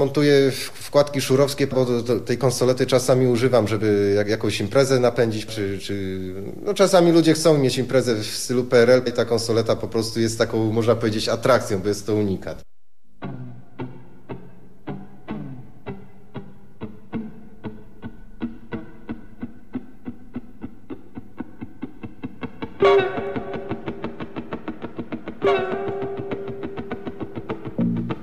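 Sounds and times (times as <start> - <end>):
speech: 0.0 - 13.4
electronic effect imitating a rushing train: 22.8 - 24.5, 25.4 - 28.0.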